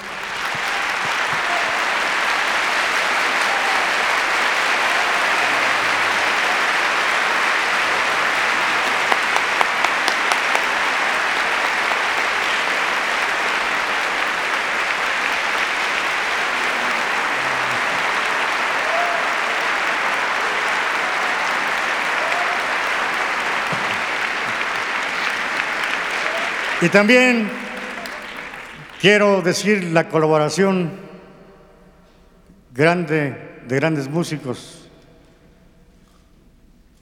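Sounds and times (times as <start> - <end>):
big audience applause: 0.0 - 29.6
speech: 26.8 - 27.6, 29.0 - 31.0, 32.8 - 34.8.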